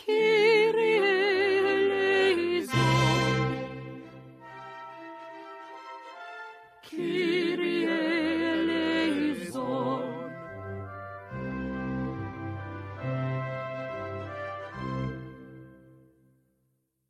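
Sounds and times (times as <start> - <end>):
sopranos singing a kyrie: 0.0 - 4.4, 6.8 - 12.4.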